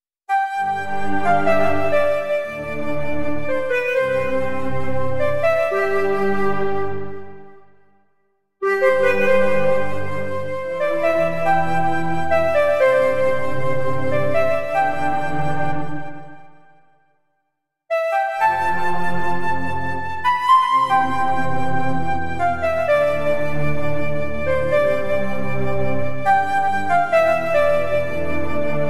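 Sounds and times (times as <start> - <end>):
piano cover: 0.3 - 7.9, 8.6 - 16.8, 17.9 - 28.8
flute background music: 0.3 - 8.0, 8.6 - 17.1, 17.9 - 28.8.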